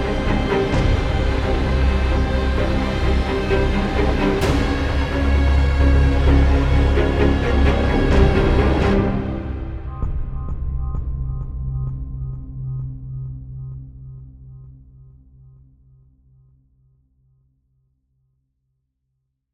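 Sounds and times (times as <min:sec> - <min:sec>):
horror tension music: 0:00.0 - 0:15.6.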